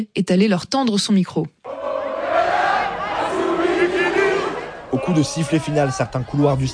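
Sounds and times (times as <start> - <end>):
speech: 0.0 - 1.6, 4.9 - 6.7
football supporters roaring and chanting: 1.7 - 6.7.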